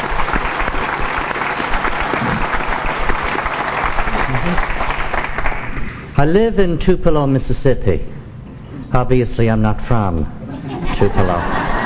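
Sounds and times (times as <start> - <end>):
audience applauding: 0.0 - 6.0
speech: 6.2 - 8.2, 8.9 - 10.4, 11.0 - 11.7
laughter: 10.4 - 11.8.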